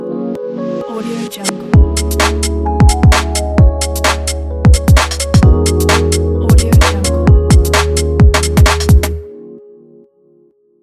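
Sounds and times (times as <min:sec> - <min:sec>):
funky clean garage beat logo: 0:01.4 - 0:09.2.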